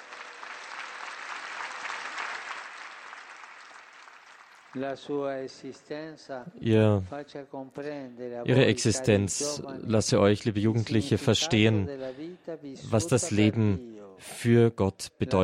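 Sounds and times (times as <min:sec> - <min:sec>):
applause: 0:00.0 - 0:05.5
speech: 0:04.7 - 0:15.4.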